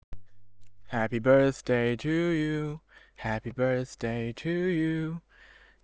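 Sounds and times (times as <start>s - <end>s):
person singing: 0.9s - 5.2s.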